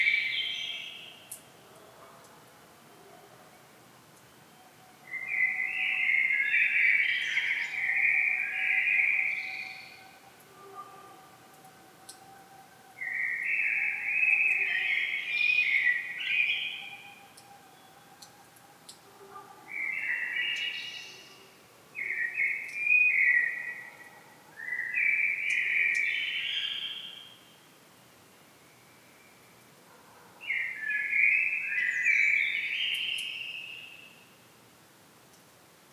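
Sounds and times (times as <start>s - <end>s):
common blackbird singing: 4.4s - 27.4s, 30.5s - 34.3s.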